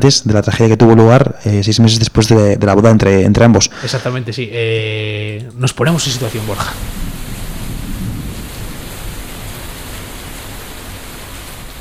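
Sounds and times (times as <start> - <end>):
speech: 0.0 - 7.0
dense rain in a night thunderstorm over Bass Lake: 5.7 - 11.7
low thunder rumbling over Bass Lake at night: 5.7 - 11.7.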